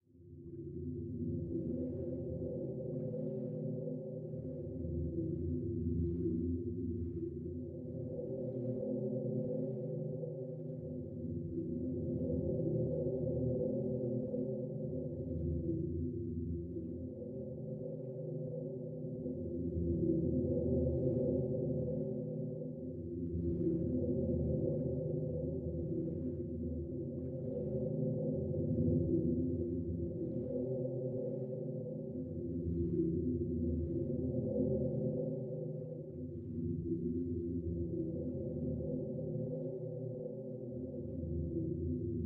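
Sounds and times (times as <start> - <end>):
music: 0.0 - 42.2.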